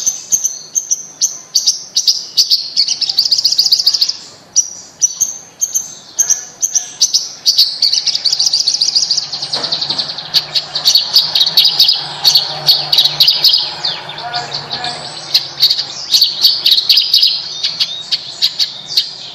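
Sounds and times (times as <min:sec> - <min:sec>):
bird chirping and trilling: 0:00.0 - 0:19.3.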